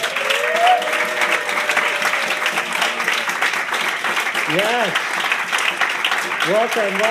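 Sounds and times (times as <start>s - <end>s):
audience applause: 0.0s - 7.0s
speech: 4.5s - 5.1s, 6.5s - 7.0s.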